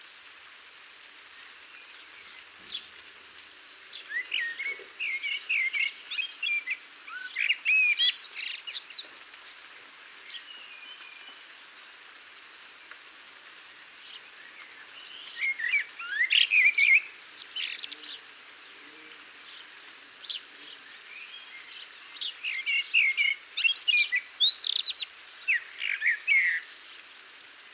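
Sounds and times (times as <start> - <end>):
Common blackbird calling: 4.0 - 9.1, 15.3 - 18.2, 22.4 - 26.7.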